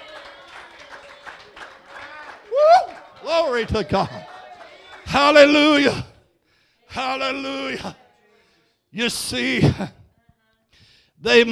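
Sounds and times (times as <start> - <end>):
audience clapping in rhythm: 0.0 - 6.0
murmur of voices: 0.0 - 8.8
speech: 3.3 - 4.2, 5.1 - 6.1, 6.9 - 8.0, 8.9 - 10.0, 11.2 - 11.4.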